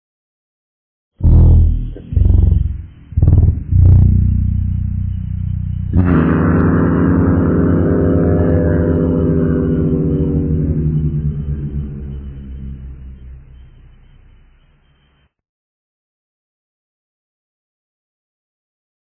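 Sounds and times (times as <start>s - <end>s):
horn: 1.2s - 4.6s, 5.7s - 11.5s.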